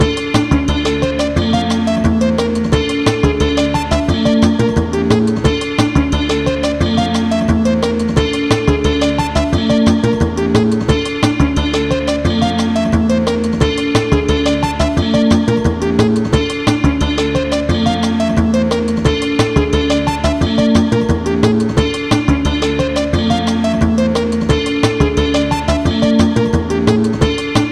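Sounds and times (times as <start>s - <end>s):
zither beat: 0.0s - 27.7s.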